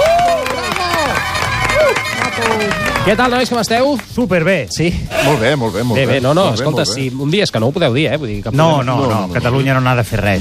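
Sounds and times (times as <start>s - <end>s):
audience applause: 0.0s - 4.0s
speech: 3.1s - 10.3s.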